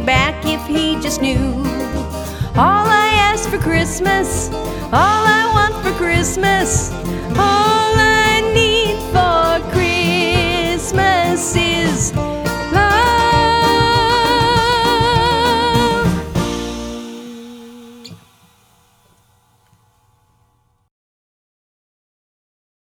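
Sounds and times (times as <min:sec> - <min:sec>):
person singing: 0:00.0 - 0:18.2.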